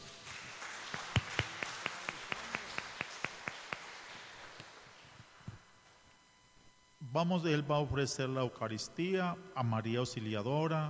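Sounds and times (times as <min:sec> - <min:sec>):
audience applauding: 0:00.0 - 0:05.4
speech: 0:07.1 - 0:10.8.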